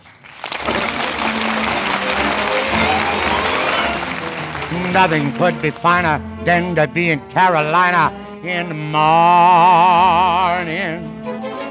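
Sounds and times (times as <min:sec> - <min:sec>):
radio studio audience applause during a 1950 broadcast: 0:00.0 - 0:05.9
speech: 0:04.9 - 0:11.1.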